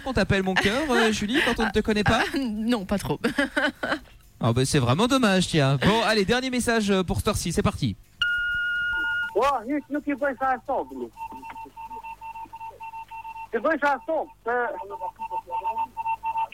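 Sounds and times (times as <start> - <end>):
laughter: 0.0 - 2.5, 3.2 - 4.1
speech: 0.0 - 8.2, 9.4 - 11.4, 13.5 - 15.8
Morse code message beeps: 8.2 - 16.5.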